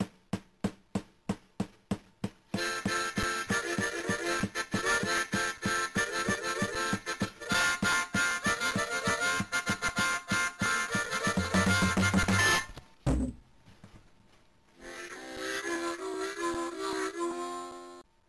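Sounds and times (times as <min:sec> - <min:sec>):
music: 0:02.5 - 0:13.2, 0:14.8 - 0:18.1.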